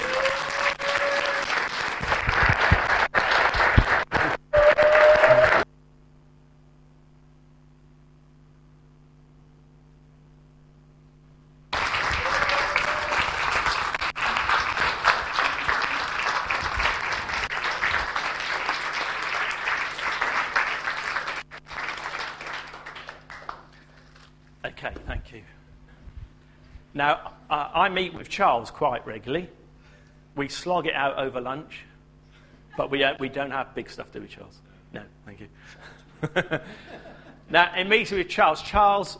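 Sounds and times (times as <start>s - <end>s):
audience applause: 0.0s - 5.7s, 11.7s - 24.0s
speech: 27.0s - 27.2s, 27.9s - 29.6s, 30.4s - 31.9s, 32.8s - 35.1s, 35.7s - 36.9s, 37.5s - 39.1s.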